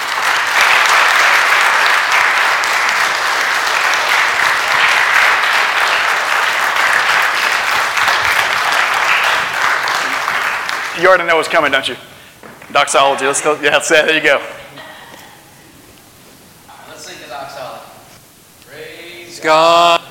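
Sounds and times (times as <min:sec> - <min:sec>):
audience round of applause: 0:00.0 - 0:11.6
speech: 0:11.0 - 0:12.1, 0:12.8 - 0:14.6, 0:19.4 - 0:20.0.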